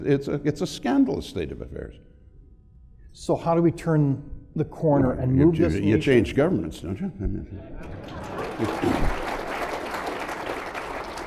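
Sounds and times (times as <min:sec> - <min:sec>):
speech: 0:00.0 - 0:02.1, 0:03.1 - 0:09.2
laughter: 0:07.0 - 0:10.0
audience applause: 0:07.8 - 0:11.2.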